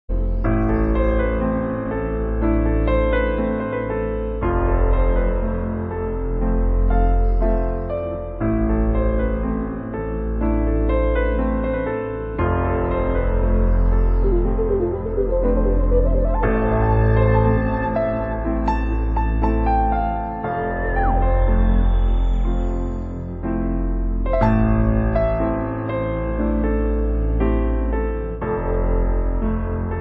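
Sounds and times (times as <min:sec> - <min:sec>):
piano: 0:00.0 - 0:29.9
outer space sounds: 0:14.0 - 0:18.8.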